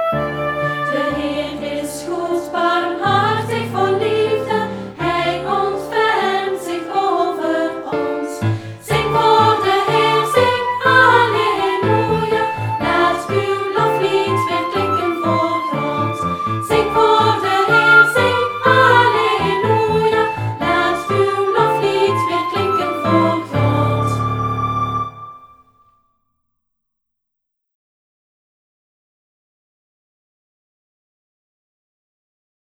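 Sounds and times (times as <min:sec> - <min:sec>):
worship singing to the Lord: 0:00.1 - 0:25.3.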